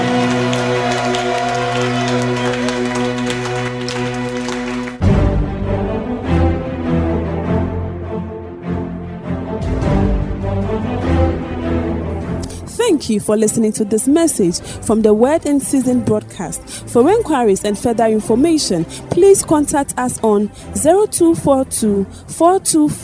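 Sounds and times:
audience clapping: 0:00.0 - 0:05.0
sustained musical backdrop: 0:00.0 - 0:23.0
speech: 0:13.1 - 0:23.0.

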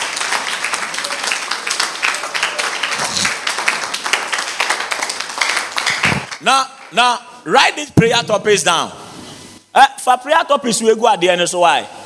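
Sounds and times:
audience clapping: 0:00.0 - 0:07.0
speech: 0:06.4 - 0:09.0, 0:09.8 - 0:12.0.

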